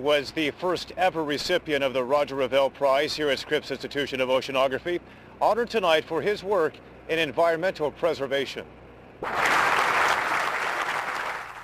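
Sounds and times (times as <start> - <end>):
speech: 0.0 - 9.6
crowd applause welcoming Al Gore at Scripps Institution of Oceanography: 9.2 - 11.6.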